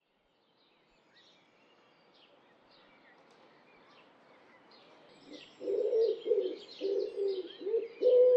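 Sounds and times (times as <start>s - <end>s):
bird cooing: 5.3s - 8.3s.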